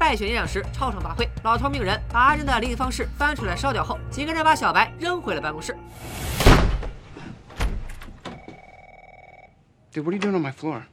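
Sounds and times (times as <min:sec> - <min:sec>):
speech: 0:00.1 - 0:06.7, 0:10.0 - 0:10.9
door being pushed open: 0:06.3 - 0:08.5.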